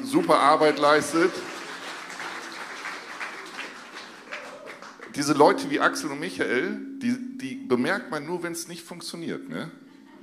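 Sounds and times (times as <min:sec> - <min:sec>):
speech: 0:00.1 - 0:01.5, 0:05.2 - 0:09.8
audience applause: 0:00.5 - 0:05.3.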